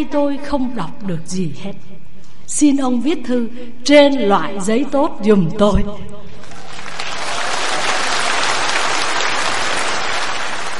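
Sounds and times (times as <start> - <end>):
speech: 0.0 - 6.2
Buddhist audience applauding during a dharma talk: 6.4 - 10.7.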